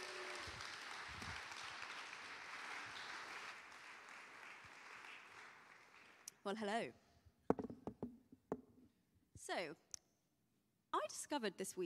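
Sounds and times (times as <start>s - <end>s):
audience applause welcoming a speaker: 0.0s - 6.3s
speech: 6.4s - 7.0s, 9.5s - 9.9s, 11.1s - 11.8s.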